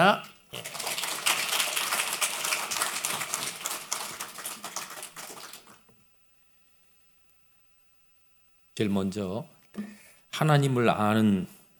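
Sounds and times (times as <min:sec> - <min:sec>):
speech: 0:00.0 - 0:00.7, 0:08.8 - 0:11.6
audience applause welcoming a speaker: 0:00.6 - 0:05.8.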